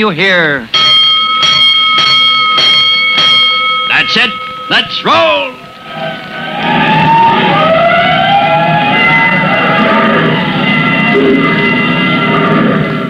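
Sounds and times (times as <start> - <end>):
speech: 0.0 - 0.8, 4.0 - 5.6
clanging fire engine bell: 0.7 - 6.0, 8.9 - 12.4
fire engine siren: 3.6 - 13.0.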